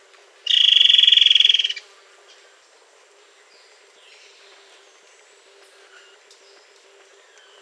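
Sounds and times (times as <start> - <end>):
bird rasping trill: 0.5 - 1.8.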